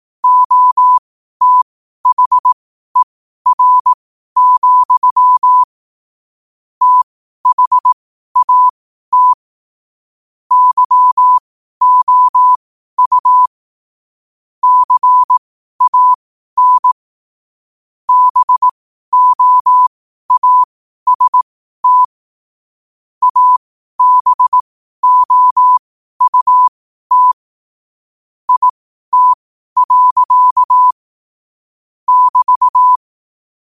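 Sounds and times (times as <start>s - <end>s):
morse code at 5 wpm: 0.2s - 5.7s, 6.8s - 9.4s, 10.5s - 13.5s, 14.6s - 17.0s, 18.1s - 22.2s, 23.2s - 27.4s, 28.5s - 31.0s, 32.1s - 33.0s.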